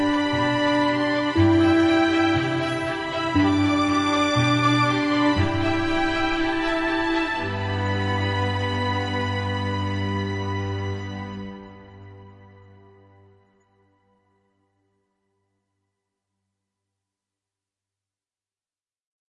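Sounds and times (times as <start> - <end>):
refreshing ambient music: 0.0 - 14.8.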